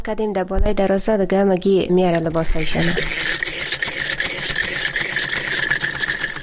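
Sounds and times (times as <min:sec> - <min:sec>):
speech: 0:00.0 - 0:03.4
sewing machine running: 0:02.8 - 0:06.4.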